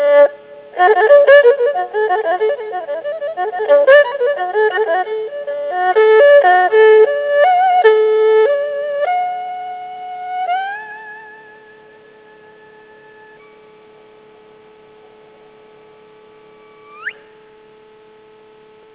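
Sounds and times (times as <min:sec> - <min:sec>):
traditional Chinese music: 0:00.0 - 0:13.6.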